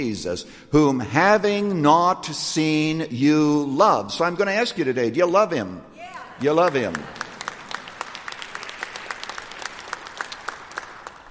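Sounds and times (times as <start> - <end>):
speech: 0.0 - 7.2
audience clapping: 6.1 - 11.2.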